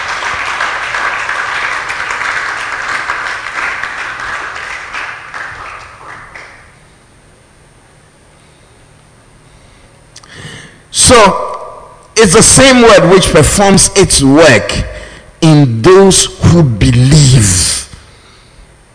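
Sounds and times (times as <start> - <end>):
crowd clapping and applauding: 0.0 - 6.8
speech: 11.1 - 11.4, 12.2 - 17.8.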